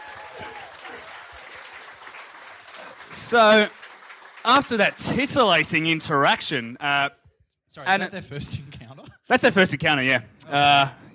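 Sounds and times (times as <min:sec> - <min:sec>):
audience applause: 0:00.0 - 0:06.4
speech: 0:03.1 - 0:03.8, 0:04.4 - 0:08.7, 0:09.3 - 0:11.1.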